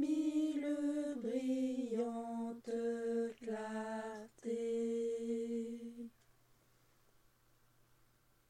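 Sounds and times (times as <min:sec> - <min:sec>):
chanting: 0:00.0 - 0:06.2.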